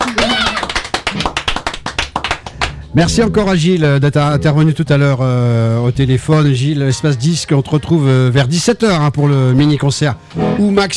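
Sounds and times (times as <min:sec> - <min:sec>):
studio audience clapping for a live band: 0:00.0 - 0:03.4
speech: 0:02.9 - 0:10.9.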